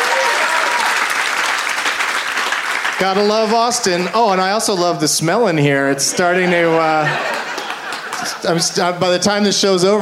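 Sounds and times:
audience applause at a comedy show in Austin: 0:00.0 - 0:04.6, 0:06.7 - 0:08.8
speech: 0:03.0 - 0:07.4, 0:08.4 - 0:10.0
laughter: 0:05.9 - 0:09.3.

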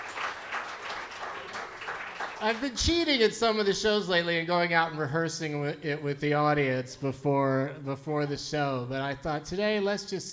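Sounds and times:
audience applauding at a live show: 0:00.0 - 0:03.0
speech: 0:02.4 - 0:10.3.

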